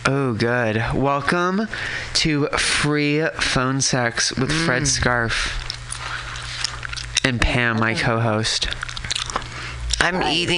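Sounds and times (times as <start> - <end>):
speech: 0.1 - 5.6, 7.2 - 8.8, 10.0 - 10.5
chewing fried chicken from KFC: 5.2 - 10.2.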